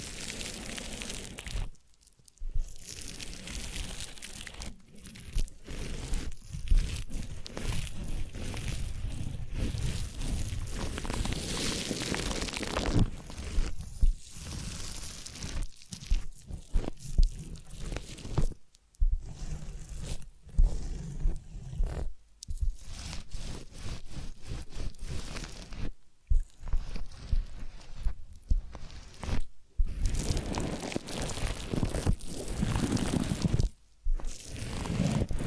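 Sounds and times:
massage rubbing and scraping: 2.5s - 35.4s.

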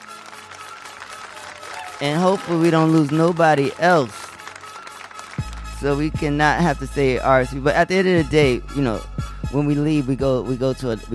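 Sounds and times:
applause: 0.0s - 6.3s
speech: 2.0s - 4.2s, 5.8s - 11.1s.

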